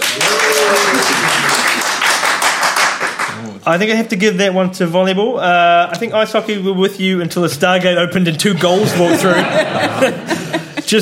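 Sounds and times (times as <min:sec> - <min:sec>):
audience applause: 0:00.0 - 0:03.4
speech: 0:03.7 - 0:11.0
laughter: 0:08.4 - 0:11.0.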